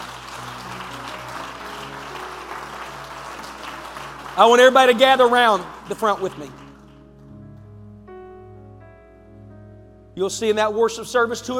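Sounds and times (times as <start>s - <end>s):
audience clapping hands: 0.0s - 7.1s
speech: 4.4s - 6.6s, 10.2s - 11.5s.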